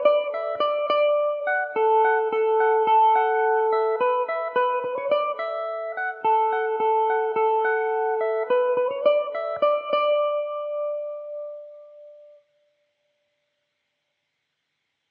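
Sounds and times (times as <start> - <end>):
Irish mandolin playing polka in D major: 0.0 - 11.5.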